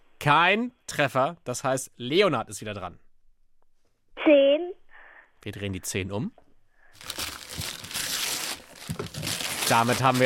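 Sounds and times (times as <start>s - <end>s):
speech: 0.2s - 3.0s, 4.2s - 4.5s, 5.4s - 6.4s, 9.7s - 10.2s
gift wrapping paper being torn open: 7.0s - 10.2s.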